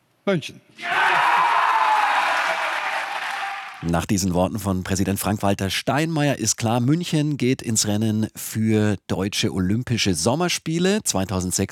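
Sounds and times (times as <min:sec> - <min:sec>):
speech: 0:00.2 - 0:01.1, 0:03.8 - 0:11.7
large crowd cheering and applauding: 0:00.8 - 0:03.8.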